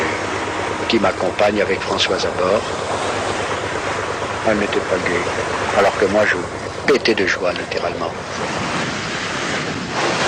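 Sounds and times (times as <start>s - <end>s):
sea waves off Plymouth: 0.0s - 10.2s
wind at sea off Plymouth: 0.0s - 10.2s
speech: 0.9s - 3.2s, 4.4s - 8.6s.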